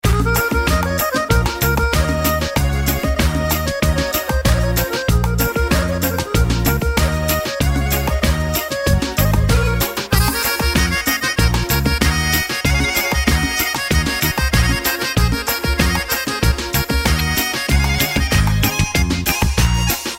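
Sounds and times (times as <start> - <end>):
turbo folk music: 0.0 - 20.1.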